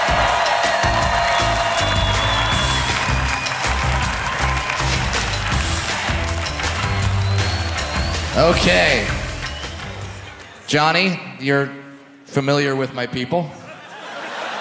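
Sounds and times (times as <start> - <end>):
comedy show audience clapping and cheering: 0.0 - 10.7
speech: 8.5 - 9.2, 10.7 - 13.6
laughter: 13.6 - 14.5.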